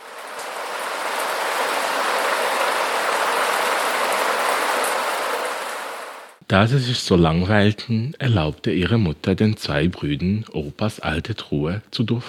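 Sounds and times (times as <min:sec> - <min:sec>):
sharp water drips: 0:00.0 - 0:06.4
steady rain patter: 0:00.0 - 0:06.4
speech: 0:06.5 - 0:12.2.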